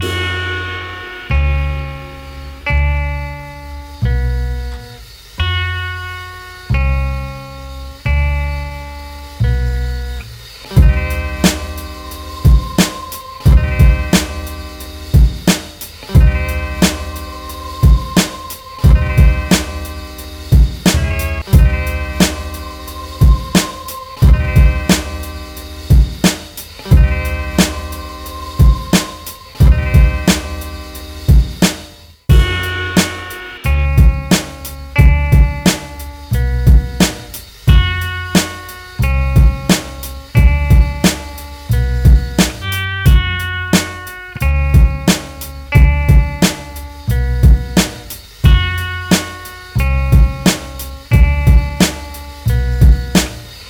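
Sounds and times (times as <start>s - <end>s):
guitar: 0.0s - 53.6s.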